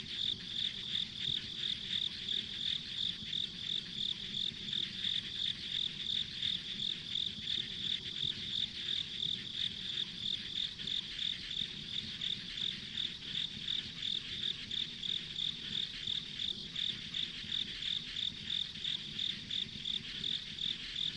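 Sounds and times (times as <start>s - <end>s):
insects chirping: 0.0s - 21.1s.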